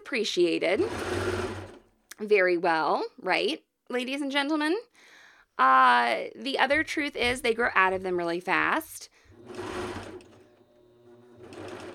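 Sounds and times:
speech: 0.1s - 1.4s, 2.2s - 9.8s
sewing machine stitching the crotch seam of kid leggings: 0.7s - 1.9s, 9.3s - 11.9s.

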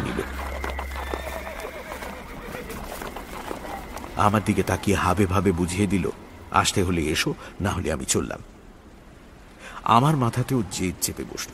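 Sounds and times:
horse whinnying: 0.0s - 4.9s
carriage horses' hooves clip-clopping: 0.0s - 7.0s
speech: 4.2s - 8.6s, 9.8s - 11.5s.

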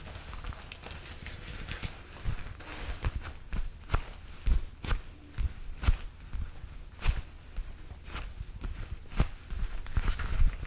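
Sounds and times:
SHEIN clothing fabric scratching: 0.0s - 10.6s.

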